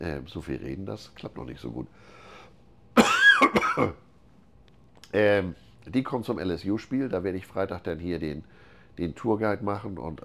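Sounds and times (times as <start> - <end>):
speech: 0.0 - 2.3, 3.0 - 4.1, 5.1 - 10.2
person coughing: 3.0 - 4.0.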